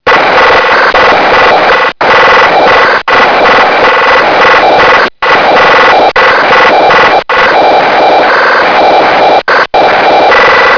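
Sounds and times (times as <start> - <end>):
signal sound: 0.0 - 10.7.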